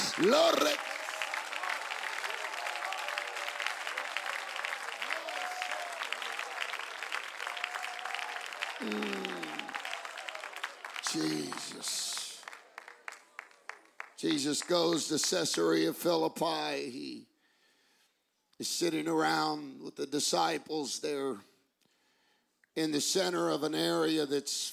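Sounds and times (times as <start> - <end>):
congregation clapping during a church service: 0.0 - 16.1
speech: 0.2 - 1.0, 14.2 - 17.3, 18.6 - 21.5, 22.8 - 24.7.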